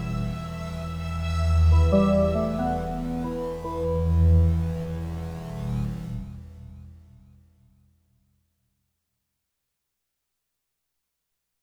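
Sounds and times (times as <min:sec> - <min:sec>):
instrumental music: 0:00.0 - 0:06.0.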